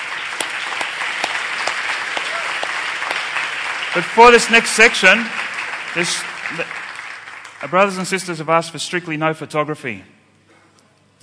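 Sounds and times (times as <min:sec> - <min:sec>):
audience applause: 0:00.0 - 0:08.4
speech: 0:03.9 - 0:05.4, 0:06.0 - 0:06.8, 0:07.6 - 0:10.1.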